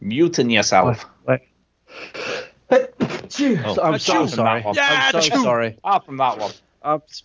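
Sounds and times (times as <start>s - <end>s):
speech: 0.0s - 7.2s
person sneezing: 1.9s - 5.5s.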